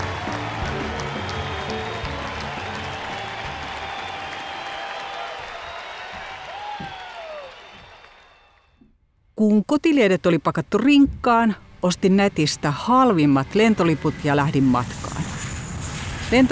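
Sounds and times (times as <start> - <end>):
audience shouting: 0.0 - 7.9
audience clapping: 0.0 - 8.8
speech: 9.4 - 15.4.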